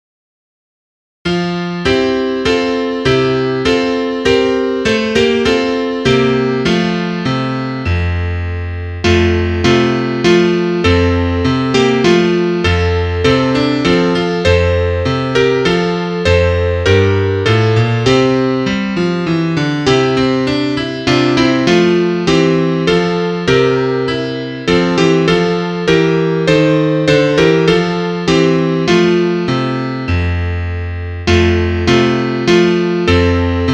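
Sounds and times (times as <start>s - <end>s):
piano: 1.3s - 33.7s.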